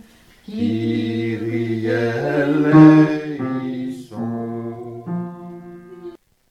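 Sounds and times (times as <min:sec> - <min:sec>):
bass voice singing a Kyrie: 0:00.6 - 0:05.5.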